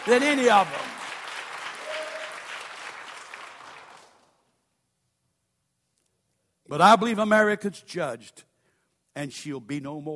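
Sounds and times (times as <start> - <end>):
speech: 0.0 - 0.9, 6.7 - 8.5, 9.2 - 10.1
audience clapping hands: 0.0 - 4.5.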